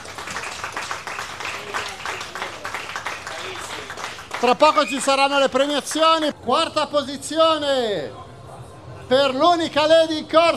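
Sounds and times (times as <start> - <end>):
audience applause: 0.0 - 5.1
speech: 4.4 - 8.2, 9.1 - 10.5.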